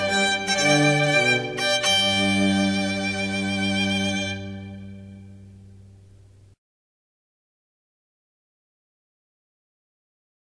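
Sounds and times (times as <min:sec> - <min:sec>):
live string trio playing: 0:00.0 - 0:06.3.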